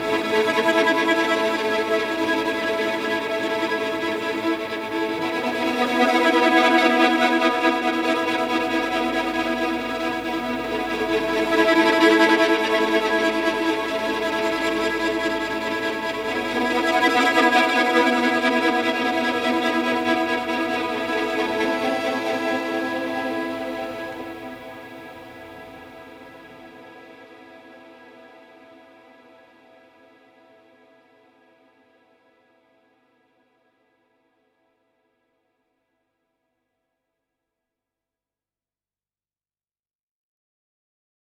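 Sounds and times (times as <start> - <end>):
shimmering string drone: 0.0 - 27.2.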